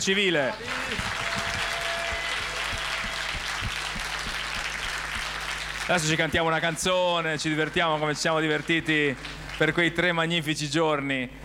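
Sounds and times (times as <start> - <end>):
speech: 0.0 - 1.3, 5.9 - 11.4
audience applause: 0.6 - 6.7, 7.4 - 9.9.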